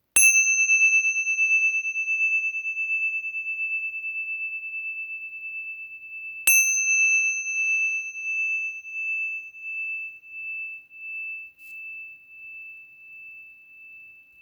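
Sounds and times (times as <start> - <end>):
Tibetan singing bowls: 0.1 - 14.4.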